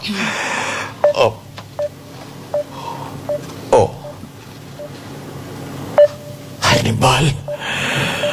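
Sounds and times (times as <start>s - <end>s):
speech: 0.0s - 0.5s, 1.2s - 1.4s
low hum: 0.0s - 8.3s
cellphone keypad beeps: 1.0s - 5.0s, 6.0s - 6.6s, 7.4s - 8.3s.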